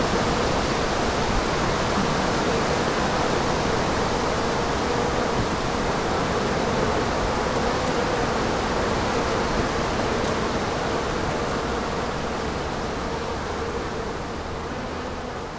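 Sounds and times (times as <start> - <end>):
bees buzzing on asters: 0.0 - 15.4.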